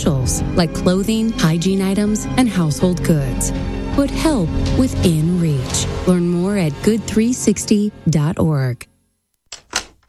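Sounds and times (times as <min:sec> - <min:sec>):
speech: 0:00.0 - 0:08.9
door lock clicking shut: 0:09.5 - 0:10.0.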